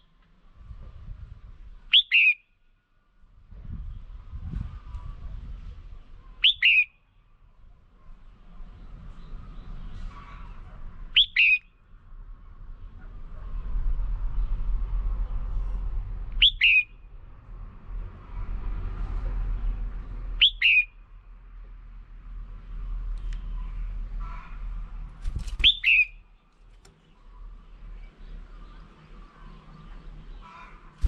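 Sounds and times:
steady low traffic rumble: 0.0s - 31.0s
red-whiskered bulbul calling: 1.9s - 2.5s, 6.2s - 7.0s, 10.1s - 11.7s, 16.4s - 17.0s, 20.4s - 20.9s, 25.6s - 26.3s, 29.4s - 31.0s.

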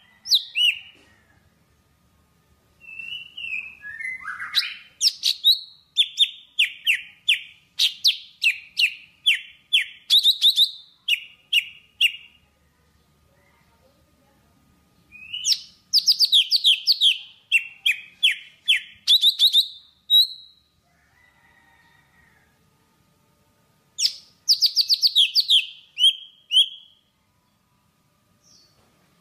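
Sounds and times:
Java sparrow singing: 0.2s - 0.9s, 2.8s - 12.4s, 15.1s - 20.7s, 24.0s - 27.0s.

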